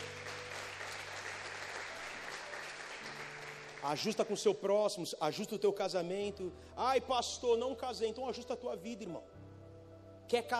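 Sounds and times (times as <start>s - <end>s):
audience clapping: 0.0s - 4.7s
speech: 3.8s - 9.4s, 10.3s - 10.5s.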